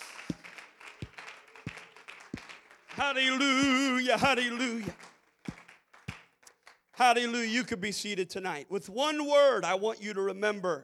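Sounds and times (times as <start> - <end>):
crowd clapping hands in a reverberant room: 0.0 - 7.3
speech: 3.0 - 5.0, 7.0 - 10.8.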